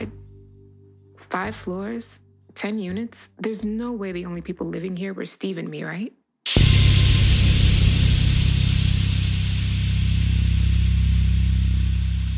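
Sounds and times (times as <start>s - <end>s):
speech: 1.3s - 6.6s
loud hiss of boiler steam in pipes: 6.5s - 12.3s.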